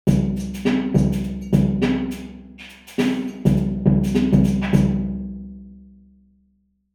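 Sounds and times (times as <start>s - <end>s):
bottle dungeon drum: 0.1s - 5.2s.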